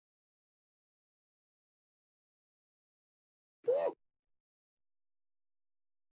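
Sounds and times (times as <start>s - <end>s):
pale gnome voice hooting: 3.7s - 4.0s.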